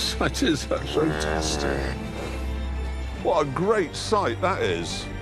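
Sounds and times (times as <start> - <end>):
speech: 0.2 - 2.1, 3.2 - 5.1
cow mooing: 0.8 - 2.0.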